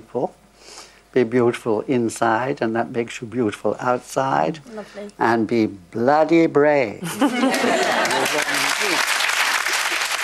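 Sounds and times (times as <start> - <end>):
speech: 0.1 - 9.1
laughter: 7.0 - 10.2
person clapping: 8.0 - 10.2.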